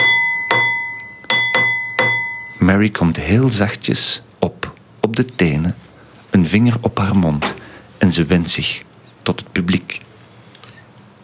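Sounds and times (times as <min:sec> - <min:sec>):
pendulum clock striking: 0:00.0 - 0:02.8
speech: 0:02.6 - 0:10.1.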